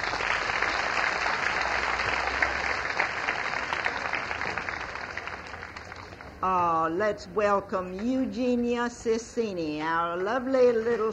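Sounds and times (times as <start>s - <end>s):
audience clapping for a folk song performance: 0.0s - 6.4s
speech: 6.4s - 11.1s.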